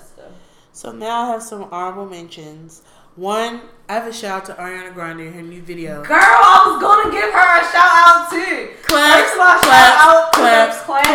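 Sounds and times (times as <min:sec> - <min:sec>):
speech: 0:00.8 - 0:11.1
hand claps: 0:08.8 - 0:11.1.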